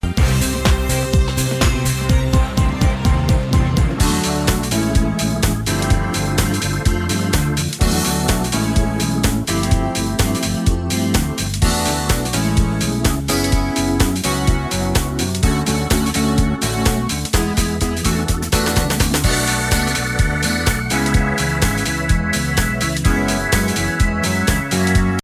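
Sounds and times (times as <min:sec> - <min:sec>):
disco music: 0:00.0 - 0:25.2.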